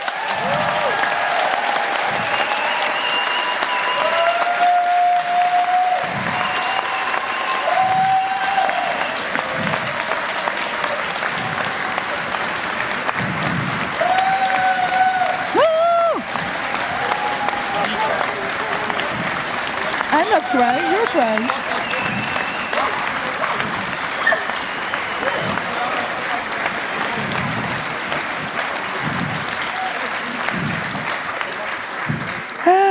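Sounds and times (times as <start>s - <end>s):
audience clapping: 0.0s - 32.9s
scattered cheers: 0.0s - 32.9s
high sustained whistles: 2.2s - 4.3s, 6.2s - 11.6s, 13.4s - 18.3s, 19.4s - 25.7s.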